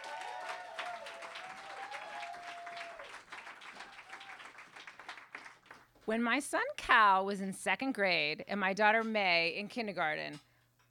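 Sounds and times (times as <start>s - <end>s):
audience applause welcoming a reader at a live literary show at the M Bar in Hollywood: 0.0s - 5.9s
speech: 6.1s - 10.8s.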